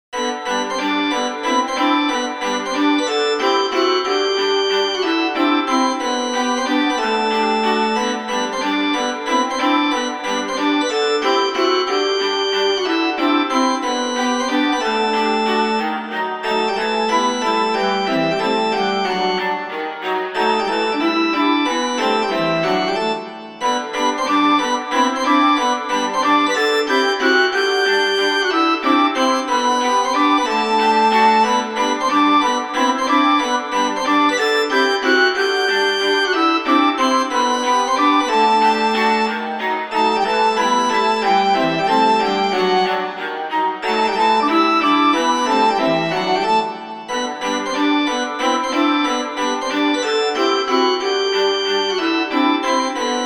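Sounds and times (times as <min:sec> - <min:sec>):
chiptune waltz: 0:00.2 - 0:53.2.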